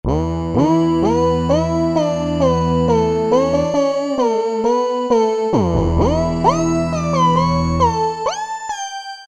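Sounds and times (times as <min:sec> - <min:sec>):
E-mu PK-6 synthesizer: 0:00.1 - 0:09.2.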